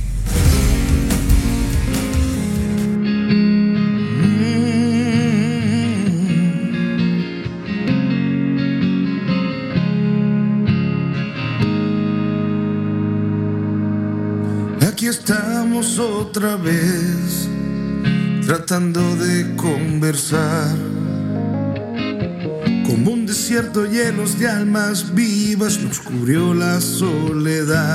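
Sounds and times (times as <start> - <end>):
rock song playing: 0.0 - 27.9
speech: 15.2 - 17.4, 18.5 - 20.9, 22.9 - 27.9.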